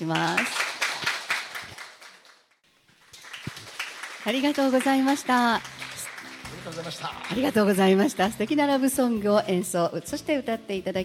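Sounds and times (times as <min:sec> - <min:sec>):
speech: 0:00.0 - 0:00.6, 0:04.2 - 0:05.7, 0:06.7 - 0:11.0
audience applause: 0:00.1 - 0:08.1.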